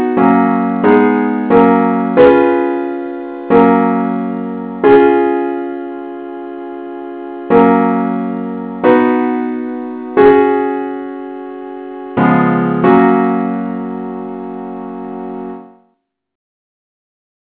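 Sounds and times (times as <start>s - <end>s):
simple accompaniment in F sharp: 0.0s - 15.8s.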